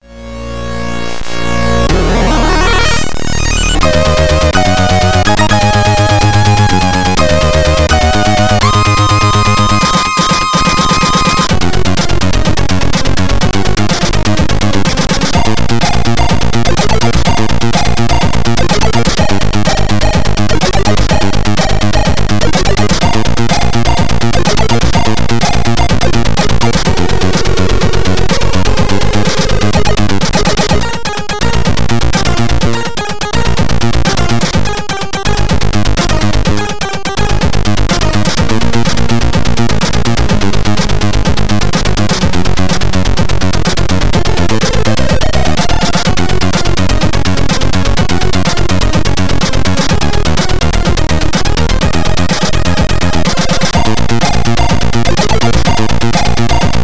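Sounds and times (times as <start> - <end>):
C64 in-game music: 0.0 - 56.8.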